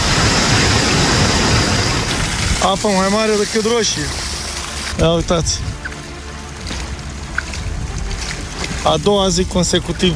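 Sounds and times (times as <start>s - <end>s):
heavy rainstorm with hail: 0.0s - 10.1s
speech: 2.6s - 4.2s, 5.0s - 5.7s, 8.8s - 10.1s.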